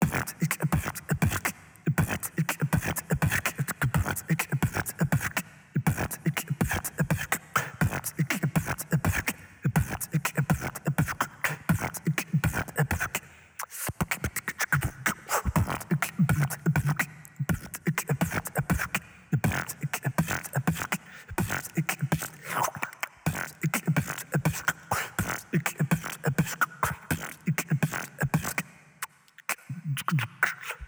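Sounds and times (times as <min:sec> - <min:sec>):
beatbox: 0:00.0 - 0:30.8.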